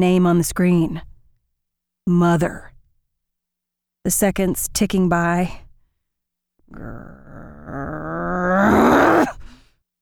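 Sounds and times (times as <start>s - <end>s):
speech: 0.0s - 1.1s, 2.1s - 2.7s, 4.0s - 5.6s, 6.7s - 8.8s
low growl: 6.7s - 9.4s.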